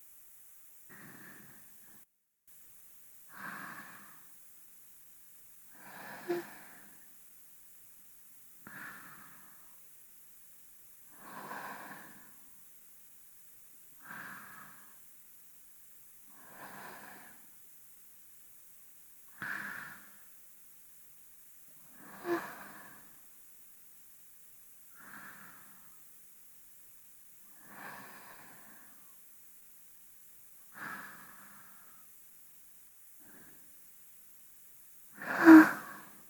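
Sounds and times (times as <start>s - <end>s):
person breathing in sleep, binaural: 0.9s - 2.0s, 3.3s - 4.4s, 5.7s - 7.2s, 8.6s - 9.8s, 11.0s - 12.6s, 14.0s - 15.0s, 16.3s - 17.6s, 19.3s - 20.3s, 21.8s - 23.3s, 24.9s - 26.1s, 27.5s - 29.2s, 30.7s - 32.2s, 33.2s - 33.8s, 35.1s - 36.2s.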